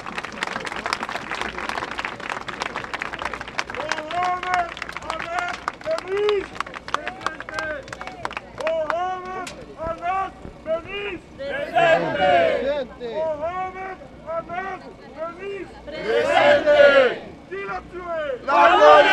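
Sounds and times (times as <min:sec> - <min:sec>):
crowd applauding: 0:00.0 - 0:10.2
voices calling out and cheering: 0:00.0 - 0:19.1.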